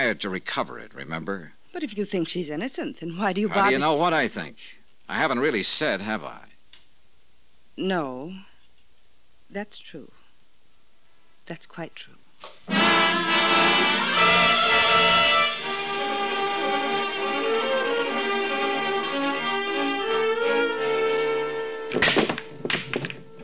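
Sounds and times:
speech: 0.0 - 6.5, 7.8 - 8.5, 9.5 - 10.2, 11.5 - 13.9
music: 12.7 - 23.4
billiard balls breaking in a game of pool: 21.9 - 23.4.

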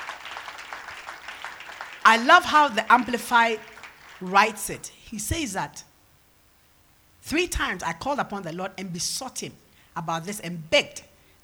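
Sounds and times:
audience clapping: 0.0 - 4.8
speech: 2.0 - 5.9, 7.2 - 11.1.

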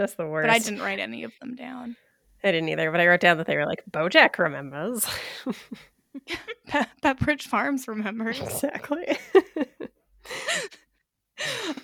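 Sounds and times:
speech: 0.0 - 9.7
person sneezing: 8.4 - 8.7.

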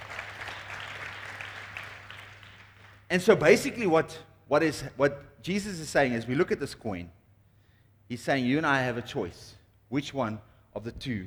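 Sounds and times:
audience applause: 0.0 - 3.1
speech: 3.1 - 7.2, 8.1 - 11.2.

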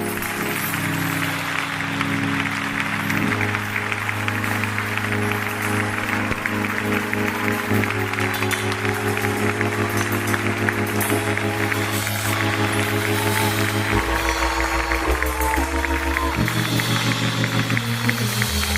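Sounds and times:
audience clapping hands: 0.0 - 18.7
low keyboard or organ chords: 0.0 - 18.7.

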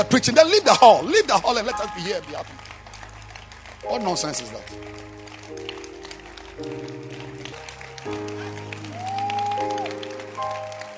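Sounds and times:
speech: 0.0 - 2.7, 3.8 - 5.7, 6.6 - 6.9
audience clapping: 0.0 - 10.9.

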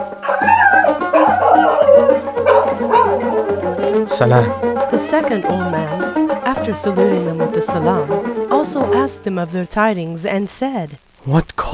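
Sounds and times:
greyhound dogs barking and whimpering: 0.2 - 3.5
speech: 4.1 - 11.7.

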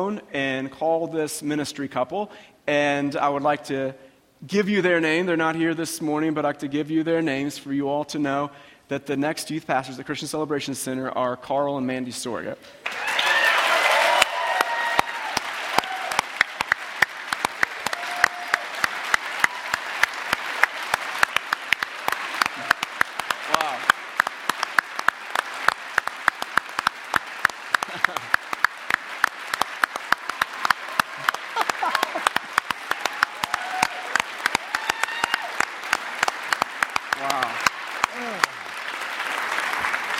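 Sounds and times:
speech: 0.0 - 13.1
audience clapping: 12.8 - 40.1.

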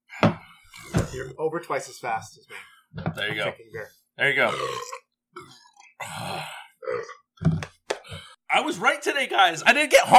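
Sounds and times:
speech: 1.1 - 5.6, 8.6 - 10.1
person burping: 4.4 - 8.2.

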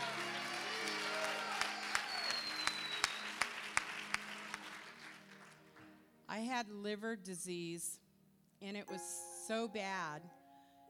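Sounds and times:
audience clapping: 0.0 - 6.0
speech: 6.4 - 8.0, 8.6 - 10.4.

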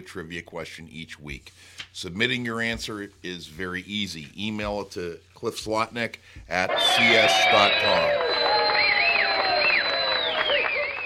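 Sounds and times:
speech: 0.0 - 8.2
cheering: 6.6 - 11.0
applause: 6.7 - 11.0.

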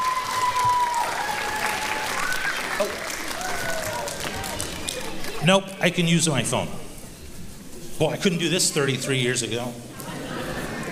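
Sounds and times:
audience applause: 0.0 - 5.4
speech: 5.4 - 6.8, 8.0 - 9.9.

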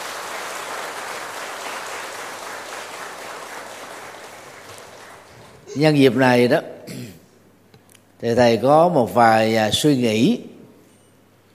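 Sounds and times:
crowd clapping: 0.0 - 5.7
speech: 5.7 - 7.0, 8.2 - 10.5.

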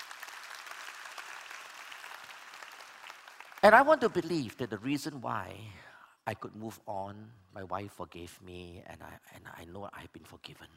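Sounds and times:
audience clapping: 0.0 - 4.8
speech: 3.6 - 10.7.

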